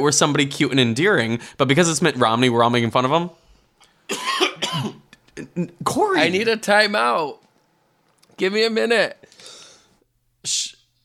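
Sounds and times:
speech: 0.0s - 3.4s, 5.6s - 7.4s, 8.4s - 9.3s, 10.4s - 10.7s
man coughing: 4.1s - 5.8s.

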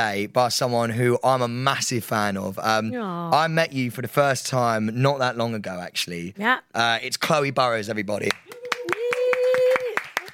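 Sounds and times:
speech: 0.0s - 8.5s
person clapping: 8.2s - 10.3s.

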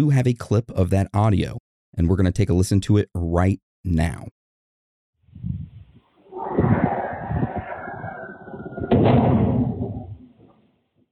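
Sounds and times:
speech: 0.0s - 4.4s
object crashing in the distance captured by a Ring security camera: 6.3s - 10.5s.

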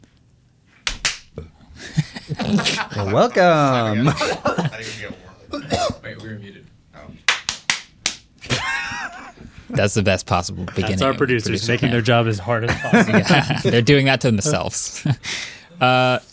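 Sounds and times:
hand claps: 0.8s - 1.3s, 7.3s - 8.3s
laughter: 1.8s - 5.7s, 8.4s - 9.7s, 12.6s - 15.3s
speech: 2.5s - 7.2s, 9.7s - 16.3s.

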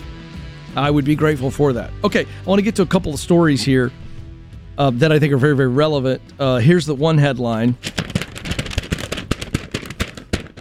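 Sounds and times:
speech: 0.8s - 4.0s, 4.8s - 8.0s
paper crinkling: 7.8s - 10.5s.

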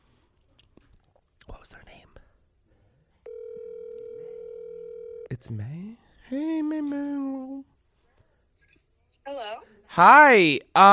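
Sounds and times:
incoming phone call electronic tone: 3.3s - 5.3s
speech: 5.3s - 7.7s, 9.3s - 10.9s.

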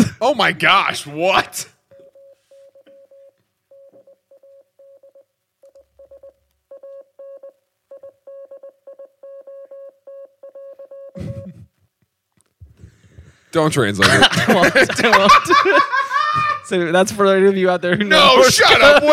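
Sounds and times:
speech: 0.2s - 1.7s, 13.5s - 19.1s
Morse code beeps: 1.9s - 11.6s
laughter: 14.0s - 16.7s, 17.8s - 19.1s.

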